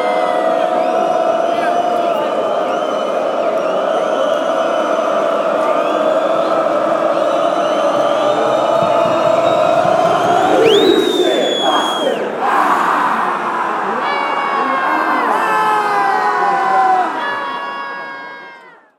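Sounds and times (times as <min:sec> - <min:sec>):
fans chanting: 0:00.0 - 0:18.0
goal kick: 0:08.0 - 0:11.4.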